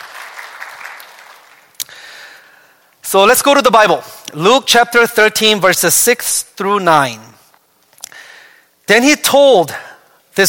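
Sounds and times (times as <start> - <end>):
congregation clapping at Loma Linda Church during a birthday welcome: 0.0 - 2.2
speech: 3.1 - 7.3, 8.9 - 10.4.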